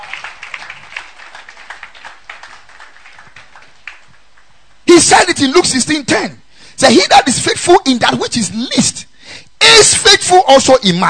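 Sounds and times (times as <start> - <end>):
audience clapping hands: 0.0 - 4.7
speech: 5.0 - 9.1, 9.8 - 11.0.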